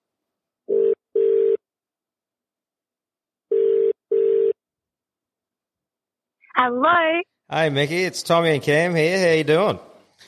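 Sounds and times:
phone line ringing: 3.5s - 4.6s
speech: 6.6s - 9.9s.

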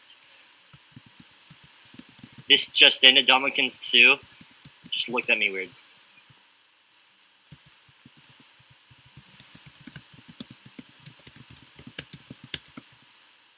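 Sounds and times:
aggressive keyboard typing: 0.8s - 2.8s, 4.2s - 5.4s, 7.5s - 13.2s
speech: 2.5s - 4.3s, 5.0s - 5.8s.

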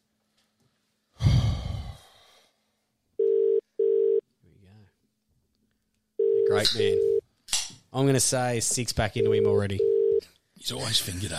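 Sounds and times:
long breathy sigh: 1.2s - 2.5s
phone call ringback tones: 3.2s - 4.2s, 6.2s - 7.2s, 9.2s - 10.2s
speech: 6.6s - 7.1s, 7.9s - 11.3s.

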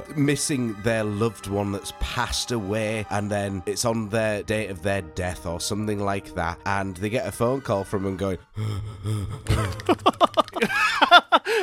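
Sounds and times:
speech: 0.0s - 10.4s
voice imitating heavy laboured breathing: 8.5s - 10.0s
laughter: 9.4s - 11.6s.

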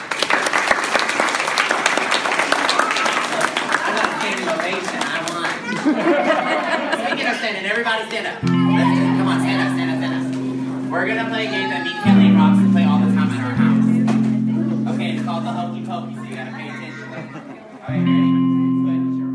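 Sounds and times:
audience of parents applauding and cheering: 0.0s - 6.2s
crowd chatter: 2.3s - 19.3s
people laughing: 3.3s - 18.7s
speech: 7.6s - 9.0s, 11.0s - 12.7s
steady musical tone: 8.4s - 19.3s.

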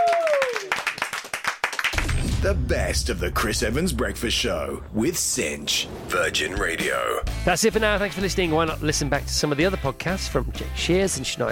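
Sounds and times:
round of applause: 0.0s - 2.2s
speech: 2.4s - 11.5s.

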